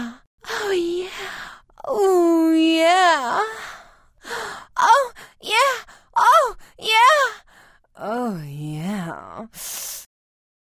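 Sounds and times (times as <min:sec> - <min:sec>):
woman moaning in orgasm: 0:00.0 - 0:09.5.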